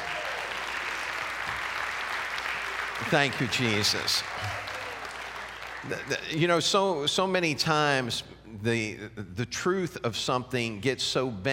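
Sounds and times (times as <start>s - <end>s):
crowd applauding: 0.0s - 6.6s
speech: 3.0s - 4.6s, 5.8s - 11.5s.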